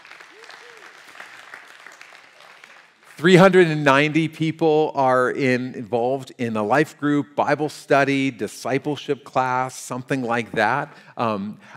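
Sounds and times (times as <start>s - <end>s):
audience applause: 0.0s - 3.2s
speech: 3.2s - 11.7s.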